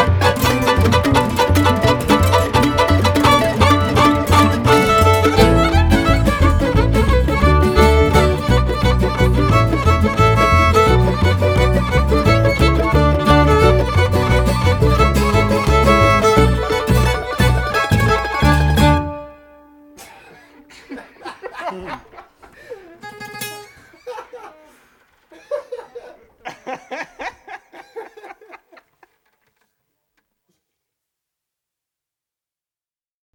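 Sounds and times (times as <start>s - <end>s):
laughter: 0.0s - 19.0s, 20.3s - 29.2s
polka music: 0.0s - 20.8s.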